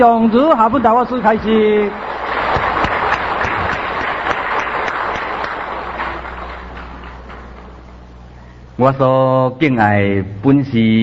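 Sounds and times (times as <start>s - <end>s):
speech: 0.0s - 2.1s, 8.8s - 11.0s
crowd applause: 0.0s - 8.0s.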